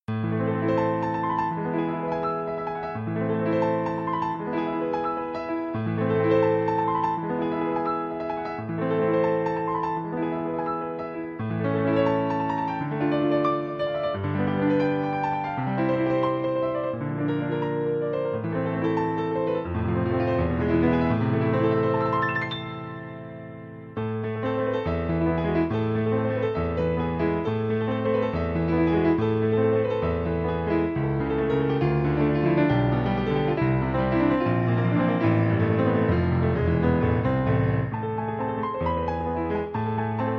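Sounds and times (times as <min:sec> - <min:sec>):
piano caprice: 0:00.0 - 0:40.3.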